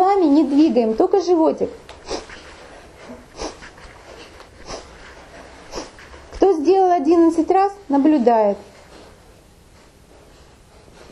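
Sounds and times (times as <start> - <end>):
speech: 0.6 - 2.0, 7.0 - 8.7
forceful exhale through the nose: 2.0 - 6.1.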